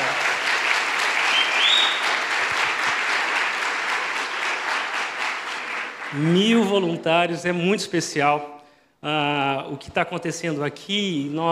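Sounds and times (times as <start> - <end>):
audience applause: 0.0 - 6.8
speech: 6.1 - 11.5.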